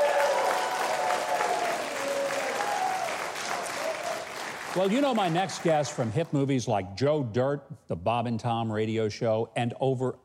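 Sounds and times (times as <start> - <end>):
audience applause for a music act: 0.0 - 6.3
speech: 4.8 - 10.2.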